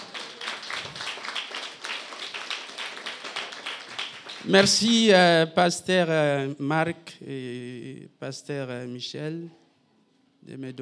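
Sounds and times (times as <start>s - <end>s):
audience applauding: 0.0s - 5.2s
speech: 4.4s - 9.6s, 10.4s - 10.8s.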